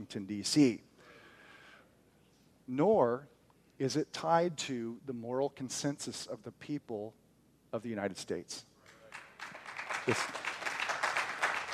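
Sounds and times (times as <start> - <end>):
speech: 0.0 - 0.9, 2.7 - 8.7, 10.0 - 10.4
crowd clapping in a large room: 8.9 - 11.7.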